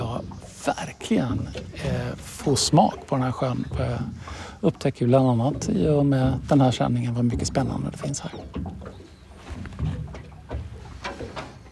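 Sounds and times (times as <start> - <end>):
distant terns: 0.0 - 10.8
water lapping against boat: 0.0 - 11.7
speech: 0.6 - 9.0.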